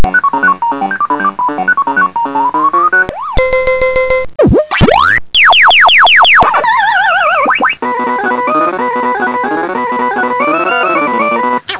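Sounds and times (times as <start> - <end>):
Pac-Man game sounds: 0.0 - 11.7.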